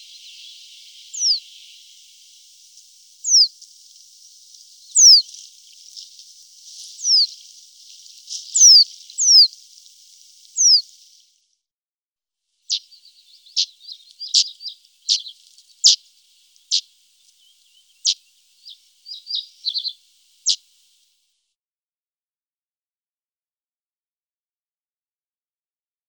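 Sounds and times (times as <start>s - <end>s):
reed bunting singing: 0.0s - 11.2s, 12.7s - 21.0s.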